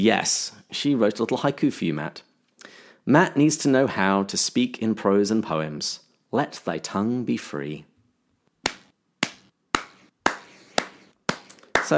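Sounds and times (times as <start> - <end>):
speech: 0.0 - 2.3, 3.0 - 7.9
slow clapping: 8.7 - 11.9.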